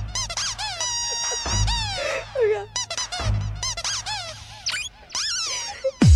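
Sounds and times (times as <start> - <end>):
rubber duck squeaking: 0.3 - 6.0.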